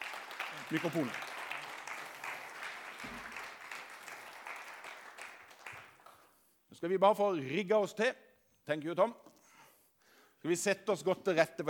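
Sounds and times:
audience applause: 0.0 - 6.2
speech: 0.7 - 1.3, 6.8 - 9.2, 10.4 - 11.6.

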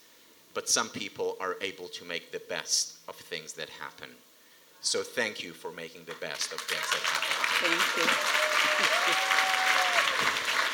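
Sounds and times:
speech: 0.6 - 9.5
audience applause: 6.1 - 10.7.

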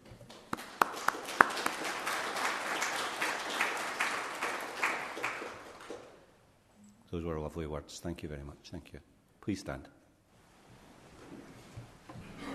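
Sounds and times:
audience applause: 0.0 - 6.2
speech: 7.2 - 10.0.

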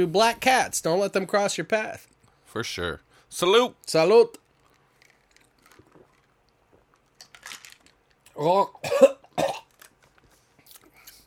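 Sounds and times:
speech: 0.0 - 4.4, 8.4 - 9.2
person choking on a piece of ice caught in the throat: 8.4 - 9.7
faint coughing: 8.8 - 9.7.

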